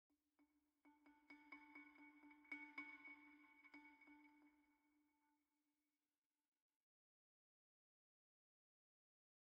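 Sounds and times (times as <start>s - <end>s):
balafon: 0.9s - 4.8s.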